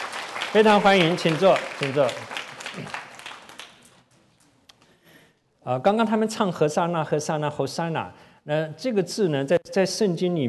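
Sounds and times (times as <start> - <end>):
audience applause: 0.0 - 4.0
speech: 0.5 - 3.0, 5.6 - 10.4.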